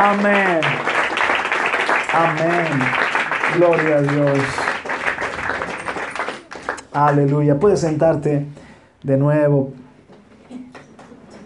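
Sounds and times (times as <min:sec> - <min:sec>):
speech: 0:00.0 - 0:00.9, 0:02.2 - 0:04.7, 0:06.9 - 0:09.8
audience applause: 0:00.0 - 0:07.4.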